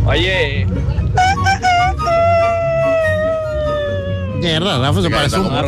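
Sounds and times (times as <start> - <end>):
speech: 0.1 - 0.9, 4.4 - 5.6
person imitating a rooster: 1.2 - 4.4.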